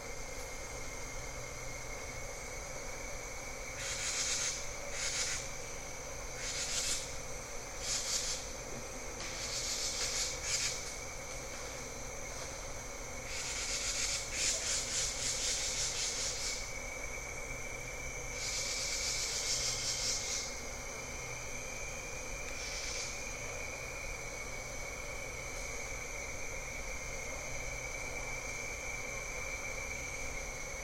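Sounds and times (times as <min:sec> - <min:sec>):
high insect-like tone: 0:00.0 - 0:30.8
bird-voiced treefrogs calling: 0:03.6 - 0:05.6, 0:06.2 - 0:08.5, 0:09.2 - 0:11.0, 0:13.2 - 0:16.8, 0:18.3 - 0:21.3.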